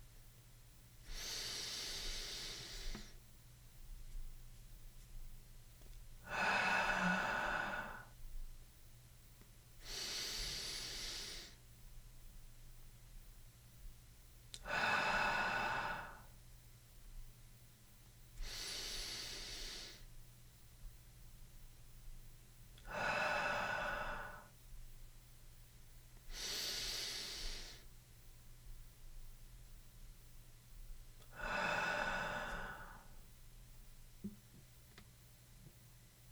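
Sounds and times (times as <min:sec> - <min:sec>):
slow guided breathing during a mindful-eating meditation: 0:01.0 - 0:03.2, 0:06.2 - 0:08.2, 0:09.8 - 0:11.6, 0:14.6 - 0:16.3, 0:18.4 - 0:20.1, 0:22.8 - 0:24.6, 0:26.3 - 0:27.9, 0:31.2 - 0:33.2.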